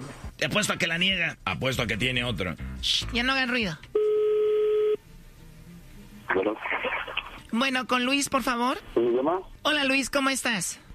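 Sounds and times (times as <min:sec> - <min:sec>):
speech: 0:00.4 - 0:04.0, 0:06.4 - 0:10.8
telephone line tone while a number is dialled: 0:04.0 - 0:05.0.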